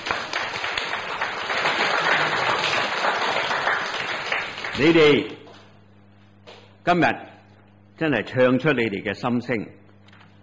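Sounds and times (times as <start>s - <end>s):
audience applauding: 0.0s - 5.2s
speech: 4.8s - 5.4s, 6.8s - 7.3s, 8.0s - 9.8s.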